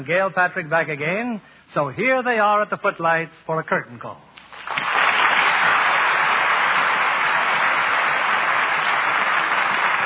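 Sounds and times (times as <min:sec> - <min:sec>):
speech: 0:00.0 - 0:04.8
audience applause: 0:04.5 - 0:10.0.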